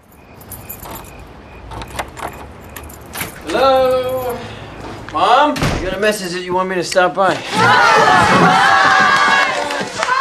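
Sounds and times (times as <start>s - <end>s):
keys jingling: 0.0s - 4.4s
speech: 3.5s - 4.5s, 5.1s - 9.0s.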